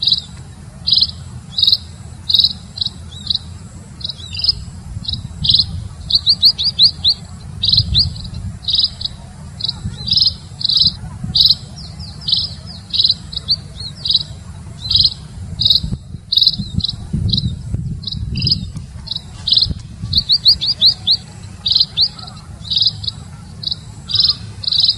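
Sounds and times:
Red-throated parrotfinch Erythrura psittacea repeating short high buzzy notes: 0.0 - 24.9.

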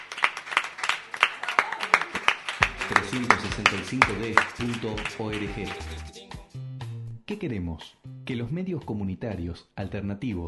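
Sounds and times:
small group clapping: 0.0 - 6.2
voice or low tonal sound: 2.7 - 6.2
speech: 3.0 - 6.2, 7.3 - 10.4.

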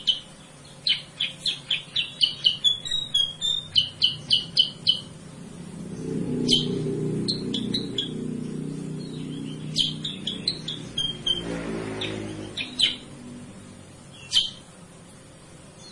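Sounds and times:
sooty-headed bulbul chirping: 0.0 - 13.2, 14.1 - 14.7
low rumbling noise: 2.9 - 14.2.

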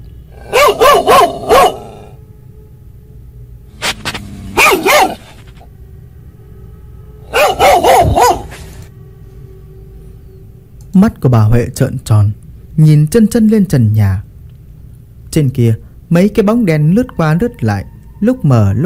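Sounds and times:
dog barking outside a bedroom door: 0.4 - 2.2, 4.4 - 5.6, 7.3 - 8.9
speech: 11.0 - 14.3, 15.4 - 18.8.

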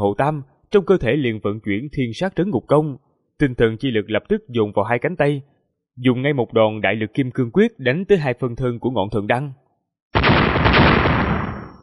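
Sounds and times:
speech: 0.0 - 10.5
two near-simultaneous explosions: 10.2 - 11.8.

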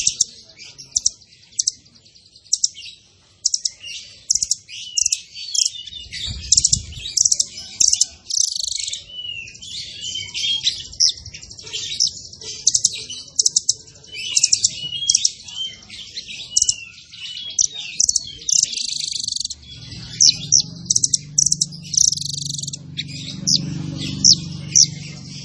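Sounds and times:
zebra finch song with buzzy bursts and trills: 0.0 - 25.4.

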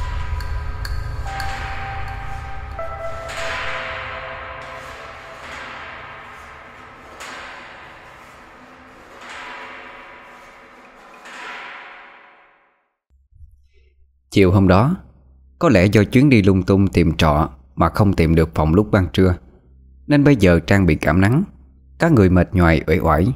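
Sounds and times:
soft piano notes: 0.0 - 11.2
speech: 14.3 - 15.0, 15.6 - 19.4, 20.1 - 23.3.

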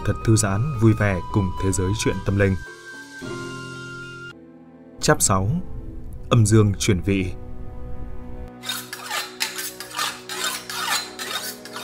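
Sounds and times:
speech: 0.0 - 3.5, 5.0 - 7.4
cleaver blade scraping back and forth on whetstone: 8.6 - 11.8.

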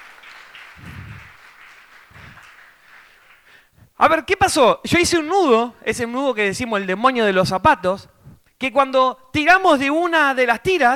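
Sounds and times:
audience applause for the speaker's assistants after a knot-tying demonstration: 0.0 - 3.6
dull low thumps: 0.8 - 1.4
speech: 4.0 - 10.9.

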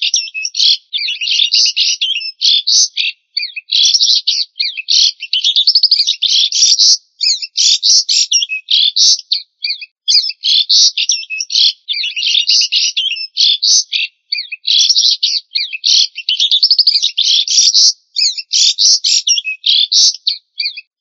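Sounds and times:
songbird song: 0.0 - 20.9.

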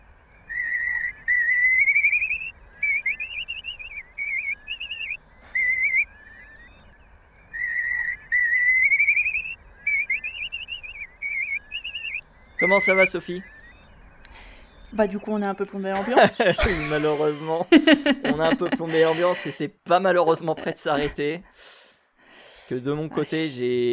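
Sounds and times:
recorded call of a vanished bird: 0.4 - 6.7, 7.5 - 13.7
speech: 12.6 - 13.6, 14.9 - 21.8, 22.7 - 23.9
laughter: 15.9 - 19.7.

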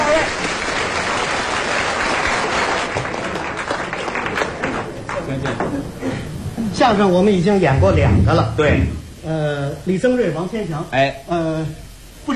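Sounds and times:
audience applause at a comic crosstalk performance: 0.0 - 6.5
speech: 6.8 - 12.3.

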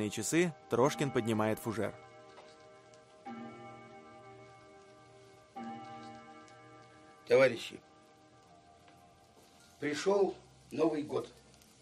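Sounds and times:
speech: 0.0 - 2.1, 7.3 - 7.9, 9.8 - 11.4
clock ticking: 0.7 - 9.0.

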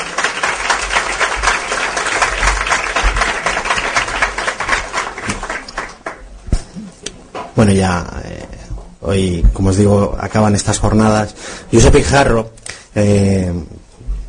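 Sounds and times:
audience applause: 0.0 - 6.8
speech: 7.6 - 8.2, 9.0 - 13.8.

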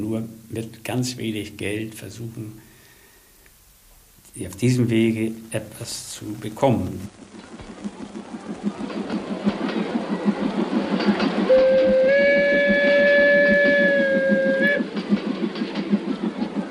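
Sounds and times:
speech: 0.0 - 2.7, 4.4 - 7.5
overcrowded steam passenger train chugging: 0.0 - 16.6
steam train whistle: 11.4 - 15.0.

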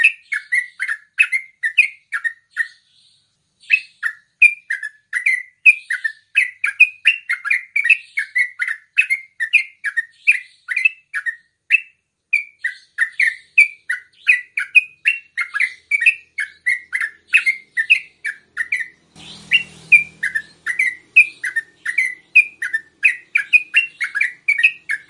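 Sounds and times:
yellow-vented bulbul song: 0.0 - 25.0.

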